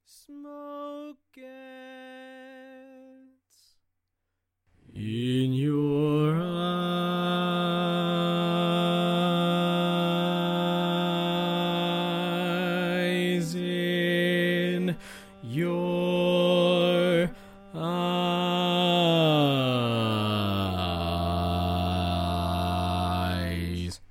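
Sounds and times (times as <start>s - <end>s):
barbershop bass singing tags: 5.0s - 24.0s.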